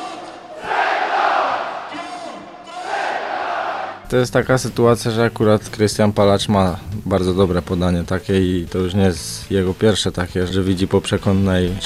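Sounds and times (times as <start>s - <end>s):
stadium crowd of football fans cheering: 0.0s - 4.0s
speech: 4.1s - 11.8s.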